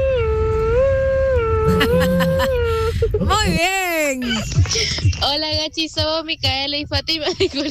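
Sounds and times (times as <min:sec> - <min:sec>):
child imitating a fire truck siren: 0:00.0 - 0:03.3
laughter: 0:01.7 - 0:03.3, 0:07.2 - 0:07.6
speech: 0:03.4 - 0:07.6.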